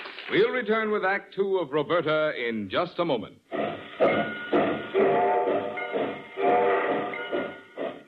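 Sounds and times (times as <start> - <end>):
speech: 0.3 - 4.3
freight train pulling out of departure yard of a terminal: 3.5 - 8.0.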